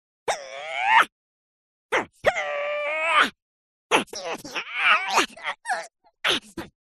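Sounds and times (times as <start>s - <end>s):
cartoon heroes fighting: 2.0s - 6.7s.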